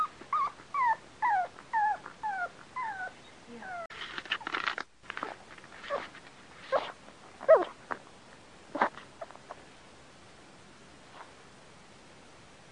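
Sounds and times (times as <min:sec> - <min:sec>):
dog yipping in downward-slurring whines: 0:00.0 - 0:03.9, 0:06.7 - 0:07.8.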